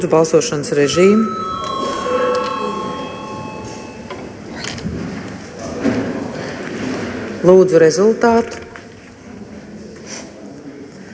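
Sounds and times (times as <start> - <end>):
speech: 0.0 - 1.8, 7.4 - 8.6
parliament chamber bell calling to vote: 0.7 - 5.2
murmur of movement and faint voices in the hall: 0.7 - 11.1.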